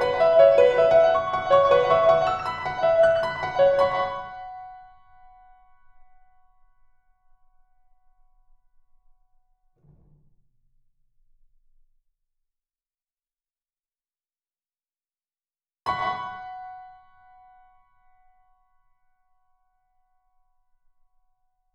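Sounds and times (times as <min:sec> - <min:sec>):
melancholy piano: 0:00.0 - 0:10.2, 0:15.9 - 0:21.7.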